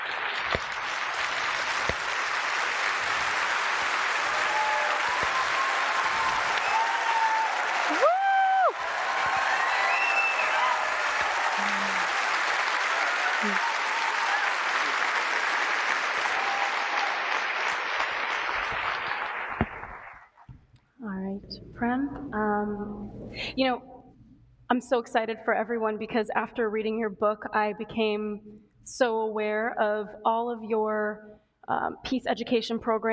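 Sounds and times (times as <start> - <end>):
audience applause welcoming Prem Rawat: 0.0 - 20.4
speech: 21.8 - 23.9, 24.7 - 33.1.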